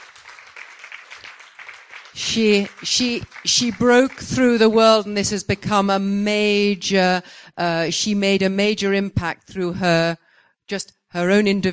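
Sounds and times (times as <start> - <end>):
audience applause: 0.0 - 4.9
speech: 2.2 - 11.7.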